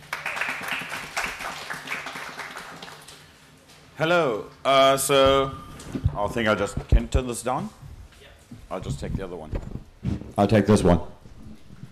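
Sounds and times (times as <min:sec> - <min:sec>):
audience round of applause: 0:00.0 - 0:03.2
speech: 0:04.0 - 0:05.6, 0:06.2 - 0:07.8, 0:08.7 - 0:09.8, 0:10.4 - 0:11.1.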